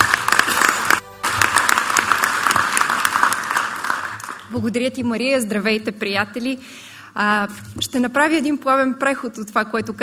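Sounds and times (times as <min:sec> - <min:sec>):
audience applause: 0:00.0 - 0:04.5
speech: 0:04.5 - 0:10.0.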